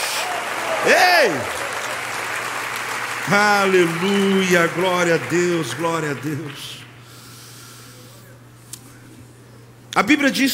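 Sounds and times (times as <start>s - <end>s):
large crowd applauding: 0.0s - 7.2s
speech: 0.8s - 1.6s, 3.3s - 6.8s, 10.0s - 10.5s.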